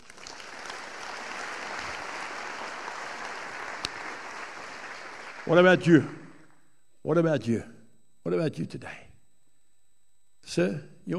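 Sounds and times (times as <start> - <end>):
audience clapping: 0.0 - 6.5
speech: 5.5 - 6.2, 7.0 - 9.0, 10.5 - 11.1.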